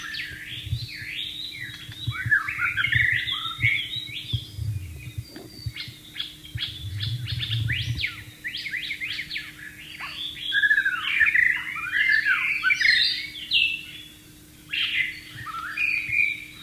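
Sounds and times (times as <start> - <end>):
white-rumped shama singing: 0.0 - 16.6
low rumble: 2.0 - 8.5.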